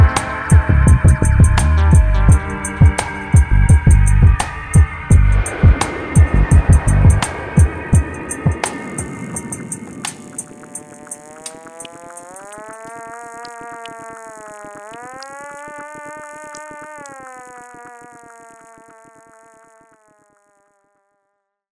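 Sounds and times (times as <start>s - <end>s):
trip-hop musical phrase: 0.0s - 13.2s.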